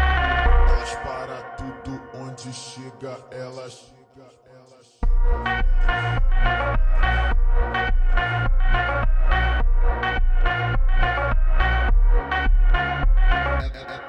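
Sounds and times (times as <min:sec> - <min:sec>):
Brazilian funk music: 0:00.2 - 0:01.4, 0:05.0 - 0:14.0.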